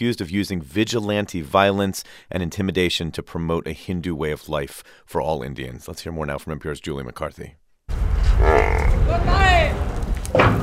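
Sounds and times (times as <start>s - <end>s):
speech: 0.0s - 7.6s, 8.4s - 10.6s
wind rumbling: 7.9s - 10.6s
water buffalo bellowing at a livestock market: 8.3s - 9.1s.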